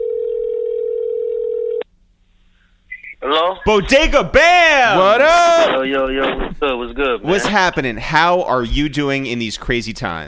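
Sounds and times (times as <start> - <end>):
telephone dial tone: 0.0 - 1.8
speech: 3.3 - 10.2.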